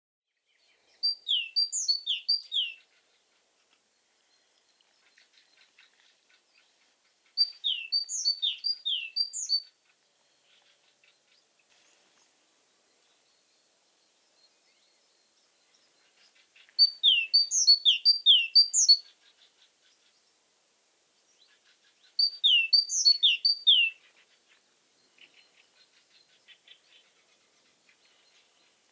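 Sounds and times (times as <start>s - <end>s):
great tit calling: 1.0s - 2.9s, 7.4s - 9.7s, 15.8s - 20.2s, 21.4s - 24.1s.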